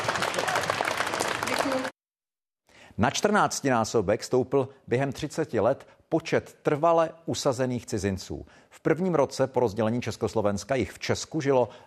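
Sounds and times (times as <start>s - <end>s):
applause for colleagues: 0.0s - 2.0s
speech: 3.0s - 11.8s.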